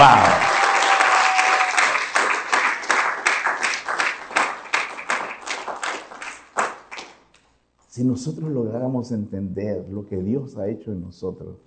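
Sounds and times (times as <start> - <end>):
audience applauding: 0.0 - 7.2
speech: 8.0 - 11.6.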